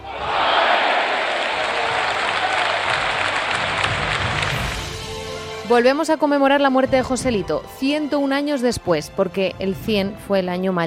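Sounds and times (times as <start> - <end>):
crowd ovation: 0.0 - 5.2
speech: 5.7 - 10.8.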